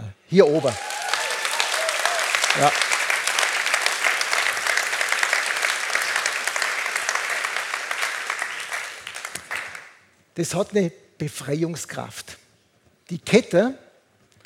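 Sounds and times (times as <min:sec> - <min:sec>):
speech: 0:00.3 - 0:00.9, 0:02.6 - 0:02.9, 0:10.4 - 0:12.4, 0:13.1 - 0:13.8
audience applause: 0:00.4 - 0:10.0.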